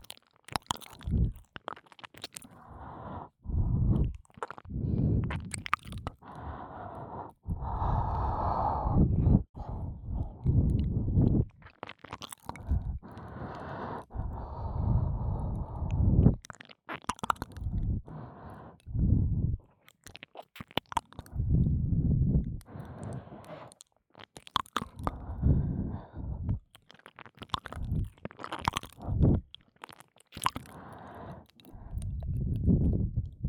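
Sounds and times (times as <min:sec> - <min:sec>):
ear licking in the right ear: 0:00.0 - 0:19.0, 0:19.9 - 0:33.4
breathing and ear licking in the right ear: 0:02.5 - 0:04.1, 0:06.2 - 0:11.5, 0:12.6 - 0:16.4, 0:17.6 - 0:19.3, 0:21.3 - 0:23.8, 0:25.0 - 0:26.6, 0:30.7 - 0:32.2.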